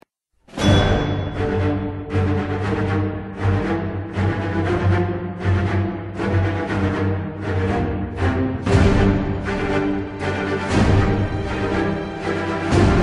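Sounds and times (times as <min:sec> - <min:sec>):
dramatic music: 0:00.5 - 0:13.0.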